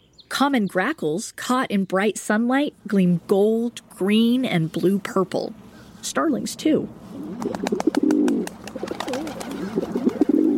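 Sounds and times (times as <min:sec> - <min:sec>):
speech: 0:00.4 - 0:07.9
rock pigeon cooing: 0:07.1 - 0:10.5.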